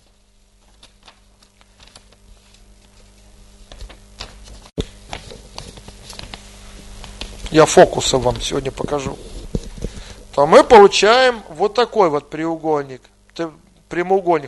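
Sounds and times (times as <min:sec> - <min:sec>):
sheet of paper being folded: 0:00.0 - 0:10.2
speech: 0:07.5 - 0:09.3, 0:10.4 - 0:14.4.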